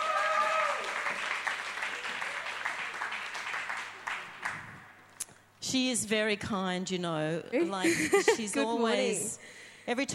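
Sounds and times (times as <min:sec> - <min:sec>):
audience applause: 0:00.0 - 0:04.8
speech: 0:05.7 - 0:10.1.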